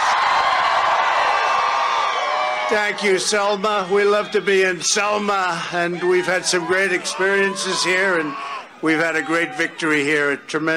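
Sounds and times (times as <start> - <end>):
large crowd cheering: 0.0 - 10.7
speech: 2.7 - 10.7.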